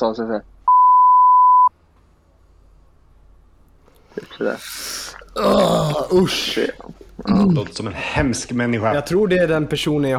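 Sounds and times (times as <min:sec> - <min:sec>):
speech: 0:00.0 - 0:00.5, 0:04.2 - 0:10.1
censor bleep: 0:00.7 - 0:01.7.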